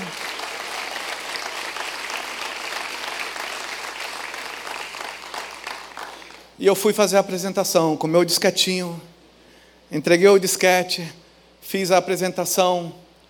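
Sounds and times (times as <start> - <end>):
audience applause: 0.0 - 6.5
speech: 6.6 - 9.1, 9.9 - 13.0.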